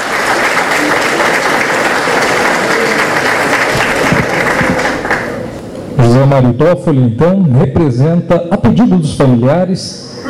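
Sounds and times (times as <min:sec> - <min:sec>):
audience applause: 0:00.0 - 0:05.5
speech: 0:06.2 - 0:10.1.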